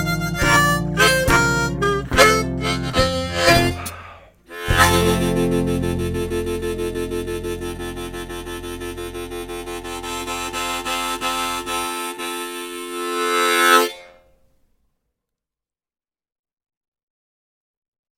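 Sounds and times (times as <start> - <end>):
acoustic instrumental in F: 0.0 - 14.2.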